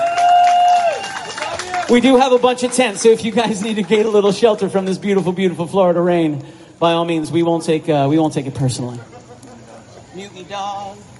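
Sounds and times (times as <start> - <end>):
crowd applause and cheering: 0.0 - 4.8
speech: 1.9 - 9.2, 10.2 - 11.1
laughter: 9.0 - 10.5.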